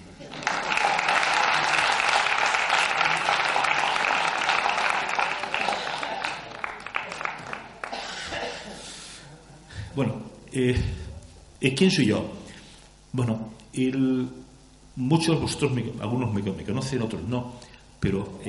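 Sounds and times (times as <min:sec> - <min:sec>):
audience applause: 0:00.0 - 0:08.4
speech: 0:10.0 - 0:11.0, 0:11.6 - 0:12.4, 0:13.2 - 0:14.4, 0:15.0 - 0:18.4.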